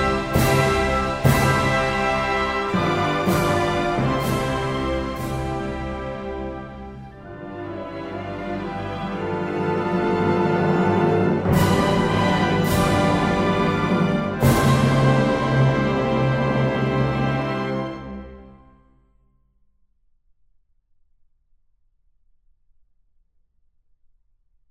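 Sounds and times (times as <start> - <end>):
instrumental national anthem: 0.0 - 18.6.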